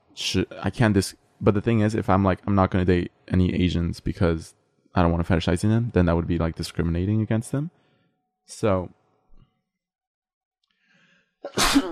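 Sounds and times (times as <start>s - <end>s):
speech: 0.2s - 7.8s, 8.5s - 9.0s, 11.4s - 11.9s
faint breath: 7.8s - 8.3s, 10.7s - 11.4s
person sneezing: 11.4s - 11.9s.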